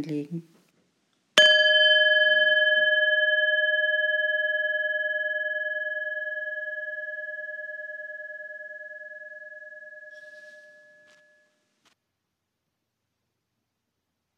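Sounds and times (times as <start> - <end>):
speech: 0.0 - 0.6
gong stroke ringing: 1.4 - 11.2.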